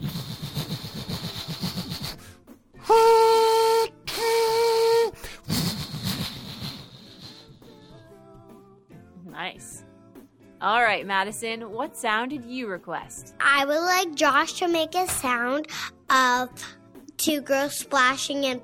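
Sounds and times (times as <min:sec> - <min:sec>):
person imitating a train whistle: 0:02.8 - 0:05.7
speech: 0:10.6 - 0:18.6.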